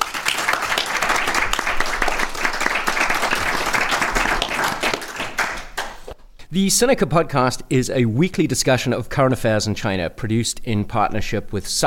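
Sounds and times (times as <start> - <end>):
audience applause: 0.0 - 6.1
speech: 6.5 - 11.8.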